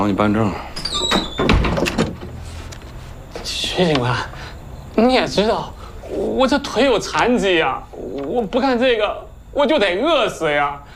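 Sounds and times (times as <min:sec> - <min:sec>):
speech: 0:00.0 - 0:01.3, 0:03.8 - 0:04.3, 0:05.0 - 0:10.9
door squeaking open: 0:00.6 - 0:02.4
loud clunks and rattle: 0:00.9 - 0:02.4.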